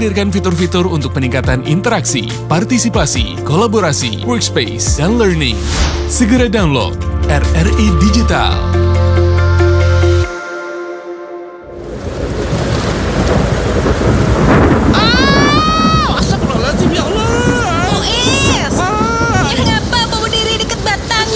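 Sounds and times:
speech: 0:00.0 - 0:08.9
steady rushing rain: 0:00.0 - 0:09.2, 0:11.6 - 0:21.3
deep rumbling thunder: 0:00.0 - 0:09.8, 0:11.6 - 0:21.3
brief musical tone: 0:00.0 - 0:12.6
high whistling tones: 0:05.3 - 0:12.0.

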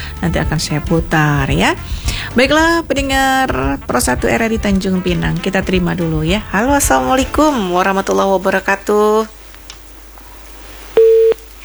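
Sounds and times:
speech: 0:00.2 - 0:09.4
telephone busy tone after a call was cut off: 0:11.0 - 0:11.6.

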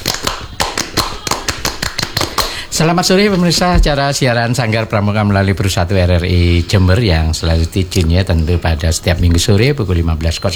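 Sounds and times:
group clapping a scout clap in unison: 0:00.0 - 0:03.0
speech: 0:02.8 - 0:10.5.

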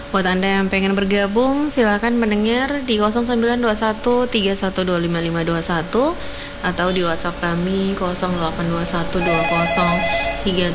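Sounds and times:
speech: 0:00.1 - 0:10.7
telephone ringing with an incoming call to a radio phone-in program in Ternate Indonesia: 0:08.2 - 0:10.7.

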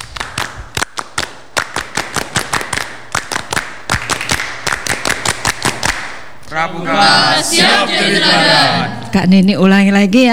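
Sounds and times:
scout rhythmic clapping: 0:00.0 - 0:09.5
laughter: 0:06.4 - 0:09.3
speech: 0:06.5 - 0:10.3.

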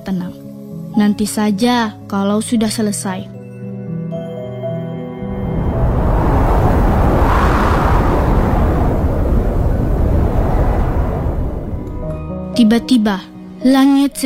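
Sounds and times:
speech: 0:01.0 - 0:03.4, 0:12.6 - 0:14.2
strong gusting wind: 0:05.1 - 0:12.9.

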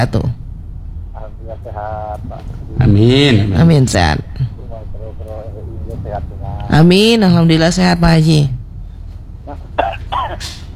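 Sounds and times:
speech: 0:00.0 - 0:00.4, 0:01.4 - 0:04.5, 0:05.1 - 0:08.6, 0:10.3 - 0:10.6
unwell person coughing: 0:09.8 - 0:10.7.

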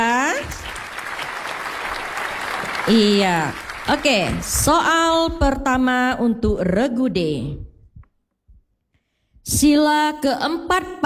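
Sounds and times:
audience of parents applauding at a children's quiz competition: 0:00.0 - 0:04.7
speech: 0:02.9 - 0:07.7, 0:09.5 - 0:11.0.

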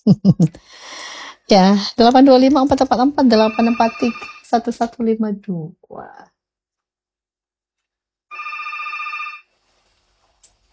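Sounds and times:
speech: 0:00.0 - 0:00.8, 0:01.5 - 0:06.3
electronic telephone ringing: 0:03.3 - 0:04.6, 0:08.3 - 0:09.5.

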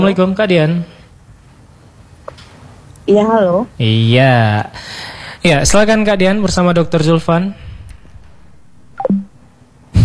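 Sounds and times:
speech: 0:00.0 - 0:00.9, 0:03.1 - 0:07.6
descending electronic tones of a disconnected phone line: 0:08.6 - 0:09.5.

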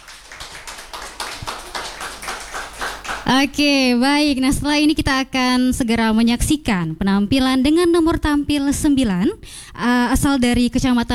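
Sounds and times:
audience applause: 0:00.0 - 0:03.4
speech: 0:03.3 - 0:11.1.

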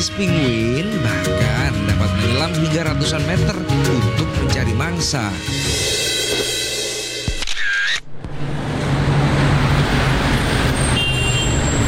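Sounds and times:
speech: 0:00.0 - 0:06.0
jammed street traffic: 0:07.4 - 0:11.8.

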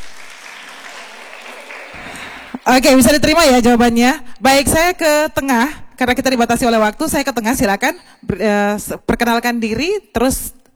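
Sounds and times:
audience applause at a question-and-answer session: 0:00.0 - 0:03.2
speech: 0:02.6 - 0:10.6.

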